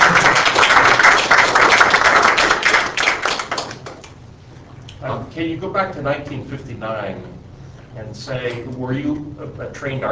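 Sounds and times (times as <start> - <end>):
crowd applauding: 0.0 - 4.2
speech: 5.4 - 10.1.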